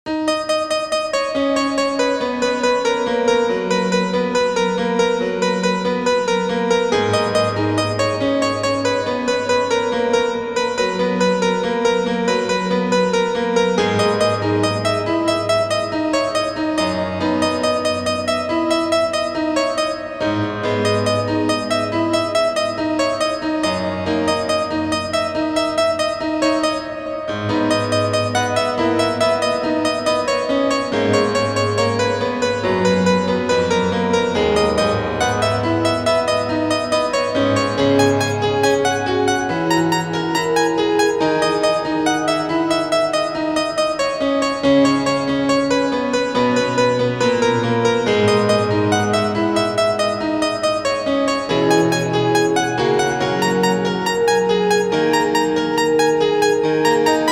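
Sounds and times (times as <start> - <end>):
piano solo melody: 0.1 - 57.3.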